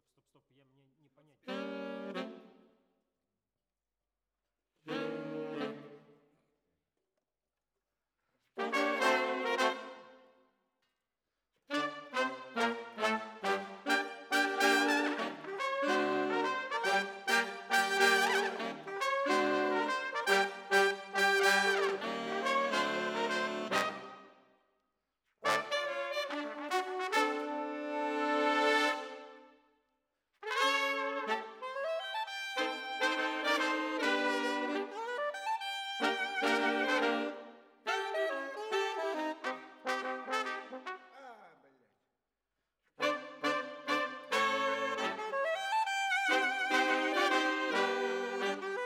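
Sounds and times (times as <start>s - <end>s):
brass instruments: 1.5s - 2.6s, 4.9s - 6.0s, 8.6s - 10.2s, 11.7s - 24.4s, 25.4s - 29.6s, 30.4s - 41.5s, 43.0s - 48.8s.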